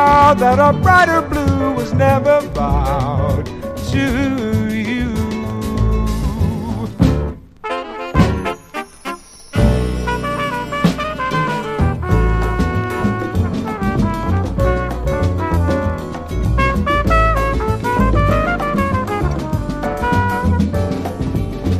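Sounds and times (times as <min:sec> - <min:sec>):
soft blues guitar strumming: 0:00.0 - 0:08.8, 0:09.6 - 0:21.7.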